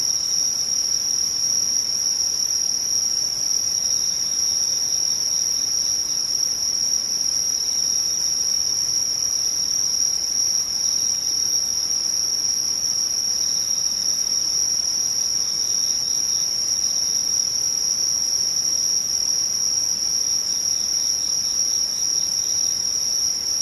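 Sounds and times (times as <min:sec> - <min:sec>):
insects chirring in chorus: 0:00.0 - 0:23.5.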